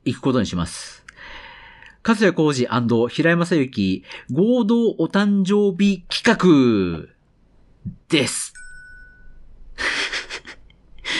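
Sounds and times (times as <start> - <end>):
speech: 0.0 - 1.0, 2.0 - 7.2, 7.8 - 8.6
Google Pixel tablet notification chime: 8.5 - 9.4.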